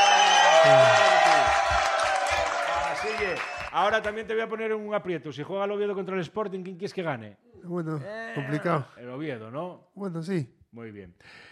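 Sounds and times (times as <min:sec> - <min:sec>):
studio audience cheering with whoops: 0:00.0 - 0:03.8
audience clapping in a Spanish-language studio chat: 0:00.0 - 0:04.4
speech: 0:00.6 - 0:01.0, 0:03.2 - 0:11.4.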